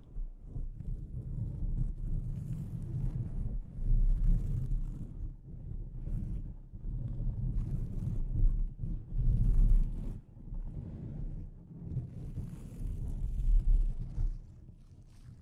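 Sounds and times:
delicate scratching on a microphone: 0:00.0 - 0:15.4.

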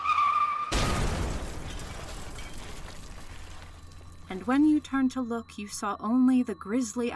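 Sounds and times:
tires screeching: 0:00.0 - 0:00.8
head-on car crash of two vehicles: 0:00.1 - 0:04.6
speech: 0:04.3 - 0:07.1.

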